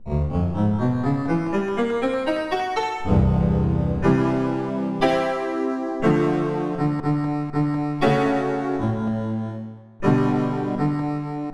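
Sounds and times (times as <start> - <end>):
honky tonk music: 0.0 - 11.5.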